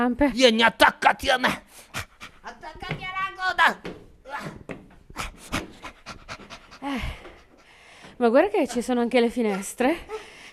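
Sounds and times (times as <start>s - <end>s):
speech: 0.0s - 4.6s, 6.8s - 7.2s, 8.2s - 10.3s
heavy panting after climbing stairs: 1.6s - 2.6s, 5.1s - 10.5s
voiced pitched gasp: 5.1s - 8.2s, 10.0s - 10.5s.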